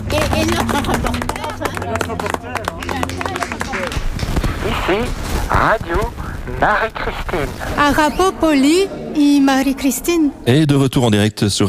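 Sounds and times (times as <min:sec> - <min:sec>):
audience applause: 0:00.0 - 0:05.1
speech: 0:00.1 - 0:03.4, 0:04.9 - 0:11.6.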